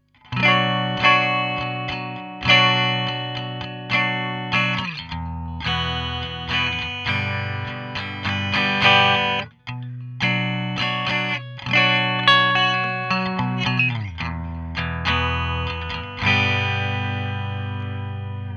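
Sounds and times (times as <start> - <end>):
clean dry electric guitar recorded with SM 57: 0.0 - 18.5.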